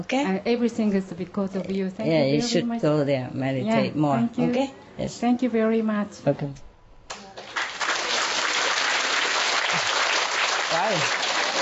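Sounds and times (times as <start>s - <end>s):
speech: 0.0s - 6.7s, 10.9s - 11.2s
audience clapping: 7.1s - 11.6s.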